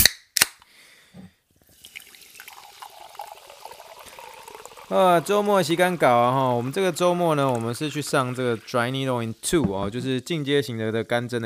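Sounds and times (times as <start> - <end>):
sharp cracks: 0.0 - 0.7
sparkling water fizzing: 1.7 - 9.6
low gurgle: 1.9 - 9.5
speech: 4.9 - 11.4.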